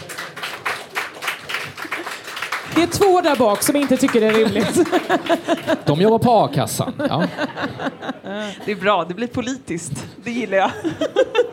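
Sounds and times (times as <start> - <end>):
clapping: 0.0 - 6.0
speech: 2.8 - 11.5
laughter: 4.2 - 8.8, 10.6 - 11.5.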